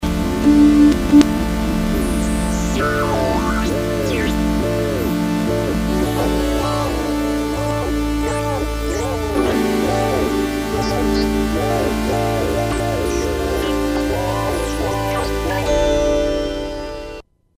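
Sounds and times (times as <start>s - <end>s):
Korg Z1 synthesizer: 0.0s - 17.2s.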